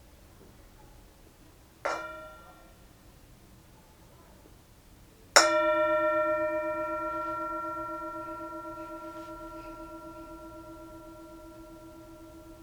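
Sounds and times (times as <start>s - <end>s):
bell struck: 5.4s - 12.6s.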